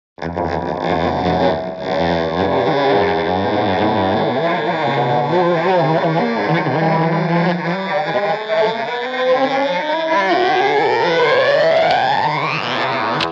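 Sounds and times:
grating guitar string: 0:00.2 - 0:13.3.

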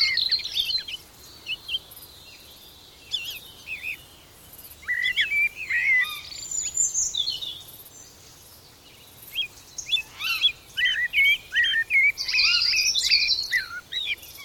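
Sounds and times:
early morning bird song with falling whistle and upslurred notes: 0:00.0 - 0:01.8, 0:03.1 - 0:04.0, 0:04.8 - 0:07.6, 0:09.3 - 0:14.4.

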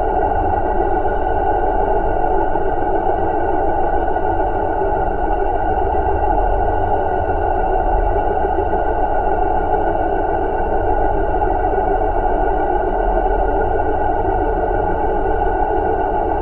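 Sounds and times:
sci-fi alien power source drone: 0:00.0 - 0:16.4.

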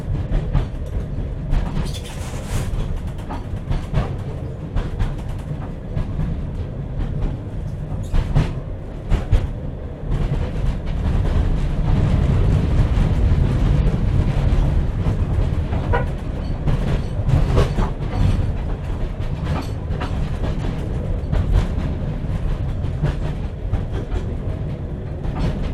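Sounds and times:
Kraus 0-2-0 steam locomotive carriage interior from 1906: 0:00.0 - 0:25.7.

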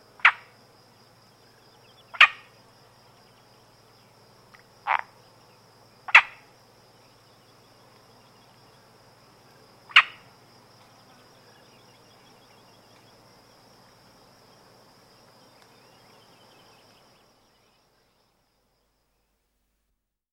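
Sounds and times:
adult male Iberian marsh frog croaking: 0:00.2 - 0:00.5, 0:02.0 - 0:02.5, 0:04.5 - 0:05.2, 0:06.0 - 0:06.5, 0:09.8 - 0:10.3.

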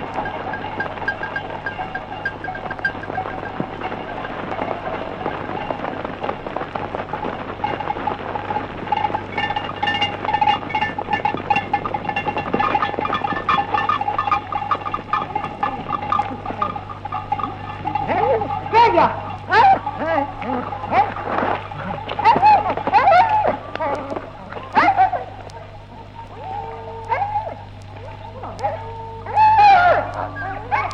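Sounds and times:
dogs barking: 0:00.0 - 0:05.5, 0:09.9 - 0:30.9
reindeer sleigh bells: 0:00.0 - 0:23.5.

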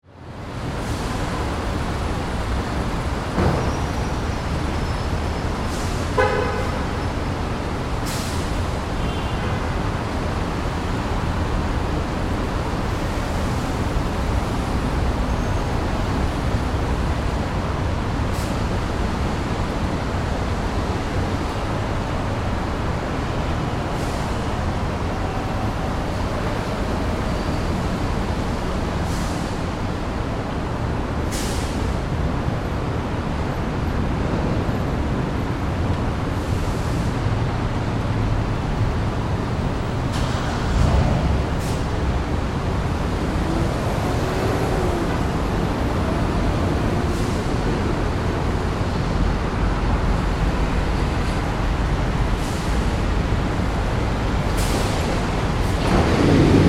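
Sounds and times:
city rooftop ambience: 0:00.0 - 0:56.6.

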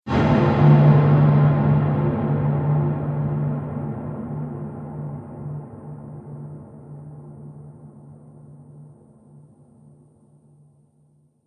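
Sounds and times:
trailer drum hit: 0:00.1 - 0:07.2.

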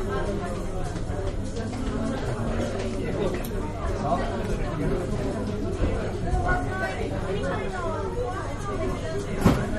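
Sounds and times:
Japanese restaurant background noise: 0:00.0 - 0:09.7.

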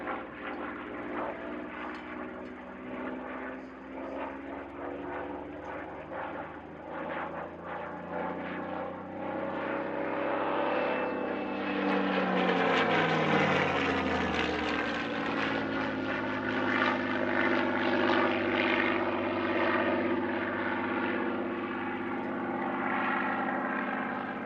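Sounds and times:
Supermarine Spitfire Mk XVI aircraft engine: 0:00.0 - 0:24.4.

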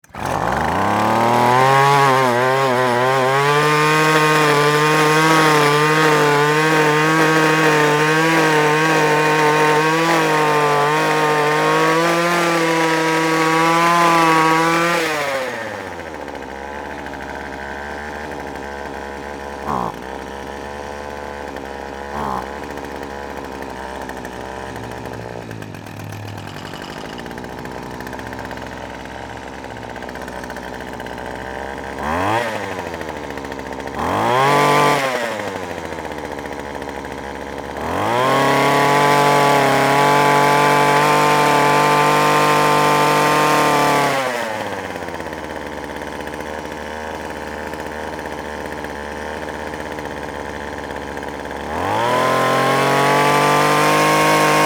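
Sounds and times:
weed wacker starting, running and revving: 0:00.0 - 0:54.6.

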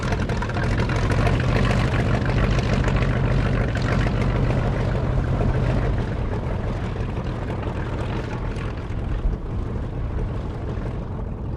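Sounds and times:
1916 Sopwith Pup WW1 replica airplane taxiing: 0:00.0 - 0:11.5.

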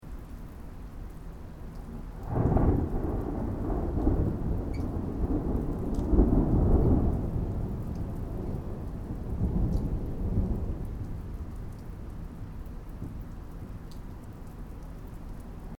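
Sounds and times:
distant thunder: 0:02.2 - 0:13.3.

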